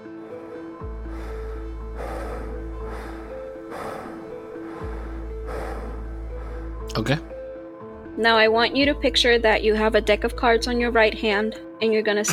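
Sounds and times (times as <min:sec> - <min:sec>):
drunk man breathing deeply with eyes closed: 0:00.0 - 0:08.2
speech: 0:06.9 - 0:07.3, 0:08.2 - 0:12.3.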